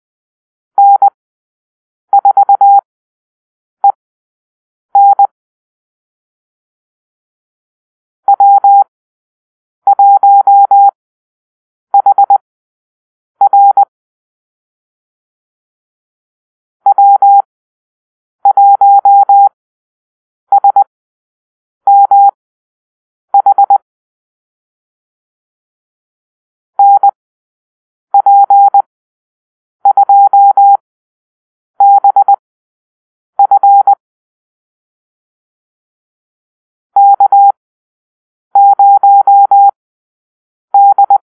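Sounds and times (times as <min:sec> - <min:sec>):
morse code call-sign beeps: 0:00.8 - 0:01.2, 0:02.2 - 0:02.8, 0:05.0 - 0:05.3, 0:08.3 - 0:08.8, 0:09.9 - 0:10.9, 0:12.0 - 0:12.4, 0:13.4 - 0:13.9, 0:16.9 - 0:17.5, 0:18.5 - 0:19.5, 0:21.9 - 0:22.4, 0:23.4 - 0:23.8, 0:26.8 - 0:27.2, 0:28.2 - 0:28.9, 0:29.8 - 0:30.8, 0:31.8 - 0:32.4, 0:33.4 - 0:34.0, 0:37.0 - 0:37.6, 0:38.6 - 0:39.8, 0:40.8 - 0:41.2.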